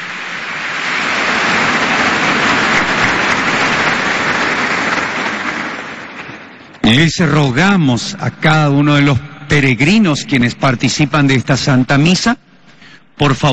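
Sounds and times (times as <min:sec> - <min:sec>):
audience applause: 0:00.0 - 0:06.8
speech: 0:06.9 - 0:12.5, 0:13.2 - 0:13.5.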